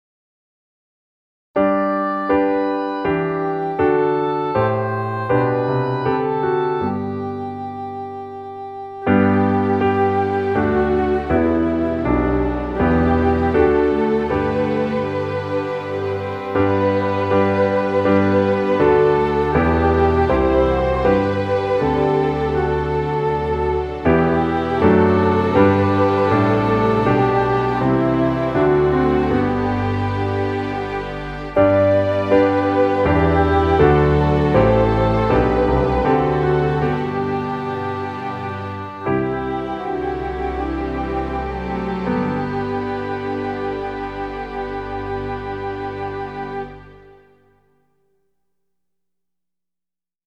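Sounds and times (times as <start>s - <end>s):
instrumental hymn: 1.6s - 47.7s.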